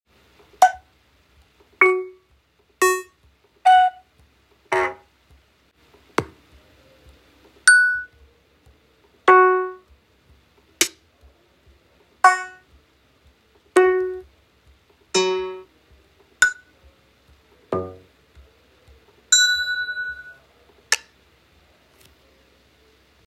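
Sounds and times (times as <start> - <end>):
recorded instrument base sounds: 1.8 - 5.1, 6.2 - 8.3, 9.2 - 10.0, 12.2 - 12.8, 13.7 - 14.3, 15.1 - 21.1.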